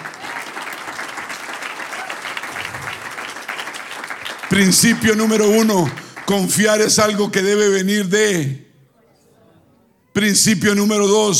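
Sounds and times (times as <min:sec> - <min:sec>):
audience applause: 0:00.0 - 0:06.6
speech: 0:04.5 - 0:08.6, 0:10.2 - 0:11.3.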